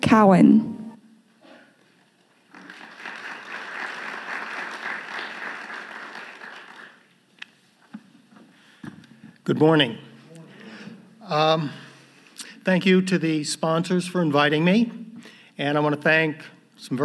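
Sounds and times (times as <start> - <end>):
speech: 0.1 - 0.8, 9.5 - 10.1, 11.3 - 11.8, 12.7 - 15.0, 15.6 - 17.0
audience applause welcoming an institute vice president at a morning event: 2.5 - 7.1.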